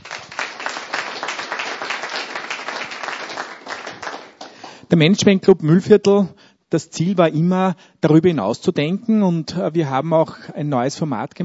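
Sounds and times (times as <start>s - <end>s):
audience applause: 0.0s - 4.8s
speech: 4.9s - 11.4s.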